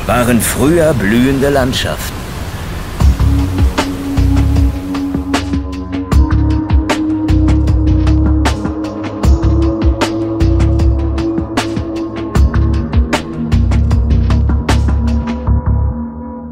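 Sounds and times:
ship hull slamming through rough waves on the open sea: 0.0s - 5.8s
ship's heavy droning engine rumble on the open sea on the way to Helgoland: 0.0s - 16.0s
speech: 0.1s - 2.2s.

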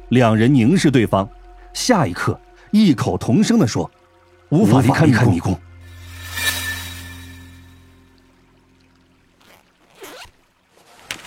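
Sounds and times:
low steady hum: 0.0s - 9.4s
speech: 0.1s - 5.7s
backpack zipper being pulled open: 9.4s - 10.4s.

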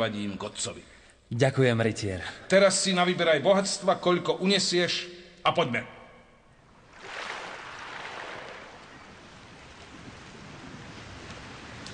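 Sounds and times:
speech: 0.0s - 6.0s
sea waves: 6.7s - 11.9s.

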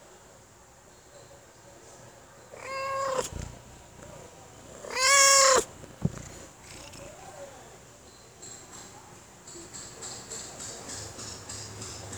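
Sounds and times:
domestic cat meowing: 2.6s - 7.2s.

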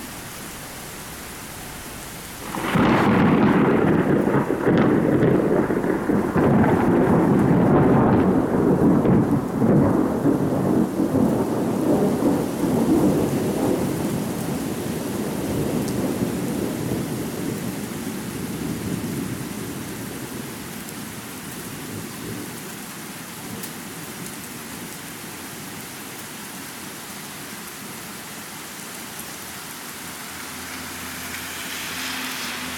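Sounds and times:
deep rolling thunder: 0.0s - 17.9s
heavy steady rain: 0.0s - 32.7s.

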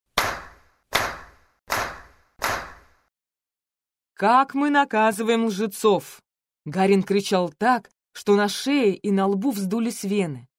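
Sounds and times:
loud sharp rhythmic claps: 0.2s - 3.1s
speech: 4.2s - 10.5s.

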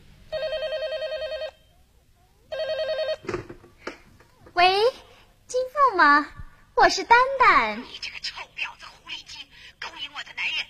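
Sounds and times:
telephone ringing: 0.3s - 1.8s, 2.5s - 3.5s
speech: 6.0s - 8.0s.

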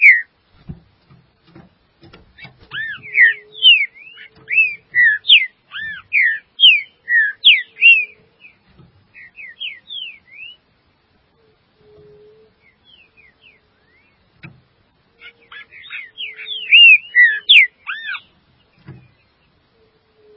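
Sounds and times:
green-winged saltator whistling: 0.0s - 0.3s, 2.4s - 8.6s, 9.2s - 10.6s, 15.2s - 18.3s
faint steady hum: 0.0s - 20.3s.

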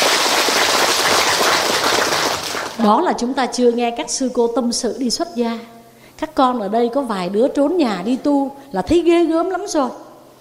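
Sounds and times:
crowd applauding: 0.0s - 2.8s
speech: 2.8s - 10.0s.

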